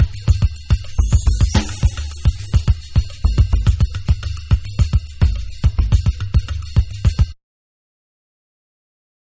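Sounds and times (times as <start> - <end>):
bonus drum beat: 0.0 - 7.2.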